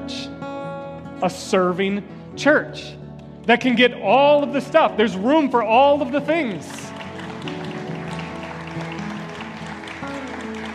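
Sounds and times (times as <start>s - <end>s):
speech: 1.2s - 7.6s
audience clapping: 3.4s - 10.7s.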